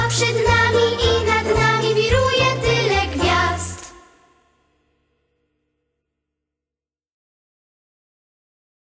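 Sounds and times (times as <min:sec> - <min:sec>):
Christmas song: 0:00.0 - 0:04.6.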